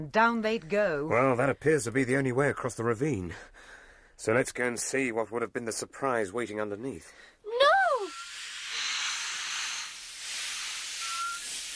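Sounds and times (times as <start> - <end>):
speech: 0.0 - 7.3
faint thin whistle: 7.9 - 8.4, 10.8 - 11.7
mass of snakes hissing: 8.0 - 11.7.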